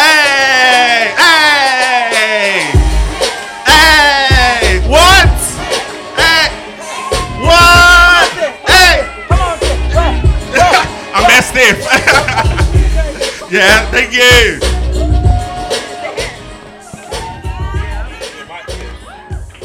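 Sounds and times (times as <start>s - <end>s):
crowd cheering: 0.0s - 12.6s, 13.3s - 19.6s
voices calling out: 0.0s - 19.5s
laughter: 9.4s - 13.9s, 15.8s - 19.3s
audience clapping: 18.2s - 19.6s.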